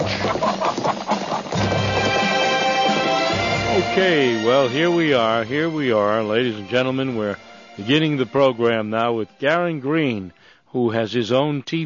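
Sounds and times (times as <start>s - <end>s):
horse whinnying: 0.0s - 4.7s
horse hooves clip-clopping: 0.0s - 9.6s
speech: 4.0s - 11.8s.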